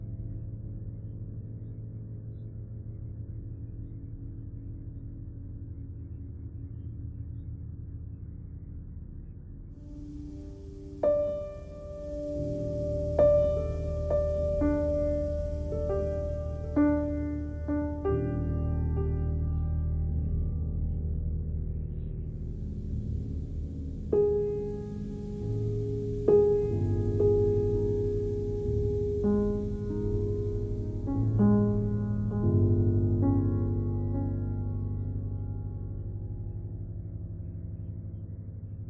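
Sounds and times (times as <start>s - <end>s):
piano noise: 9.9s - 36.6s.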